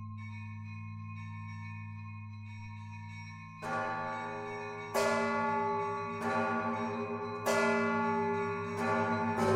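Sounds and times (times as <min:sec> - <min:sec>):
large bell of the Lavra bell tower ringing: 0:03.6 - 0:09.5.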